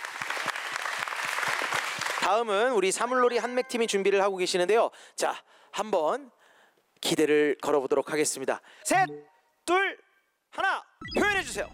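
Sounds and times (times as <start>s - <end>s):
audience applause for a traditional Korean folk performance troupe: 0.0s - 2.8s
speech: 2.3s - 6.4s, 7.0s - 11.7s.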